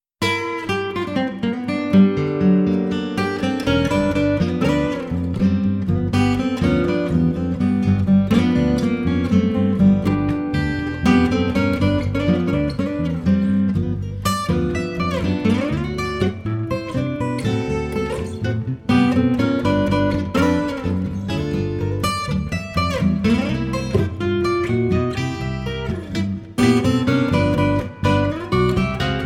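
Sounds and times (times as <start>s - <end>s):
blues music: 0.2s - 29.2s.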